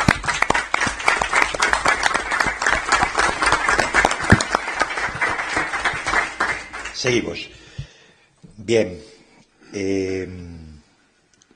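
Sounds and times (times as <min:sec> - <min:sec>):
applause from a group: 0:00.0 - 0:07.5
speech: 0:07.0 - 0:07.6, 0:08.7 - 0:09.1, 0:09.7 - 0:10.4.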